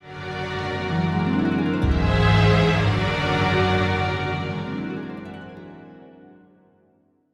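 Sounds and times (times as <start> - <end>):
play stinger: 0.6 - 5.6.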